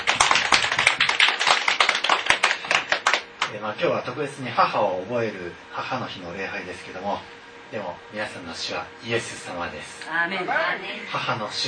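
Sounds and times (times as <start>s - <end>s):
audience applause: 0.0s - 3.3s
speech: 3.6s - 11.6s.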